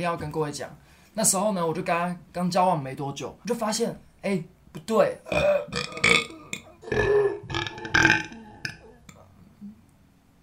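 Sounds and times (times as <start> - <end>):
speech: 0.0 - 6.3, 6.9 - 7.2
burp: 5.3 - 9.2.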